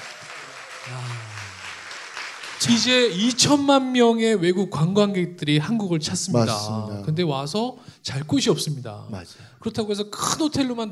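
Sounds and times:
voices whooping and cheering: 0.0 - 1.8
audience clapping: 0.0 - 3.7
speech: 0.9 - 1.3, 2.6 - 10.9.

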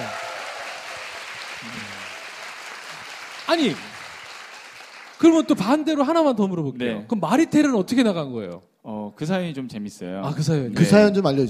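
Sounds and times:
audience applause: 0.0 - 5.5
speech: 3.5 - 3.9, 5.2 - 11.4.

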